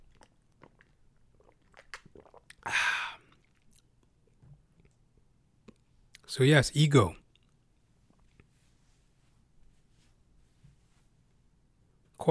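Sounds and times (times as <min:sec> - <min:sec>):
person drinking water from a bottle: 0:00.0 - 0:05.0
speech: 0:06.3 - 0:07.2.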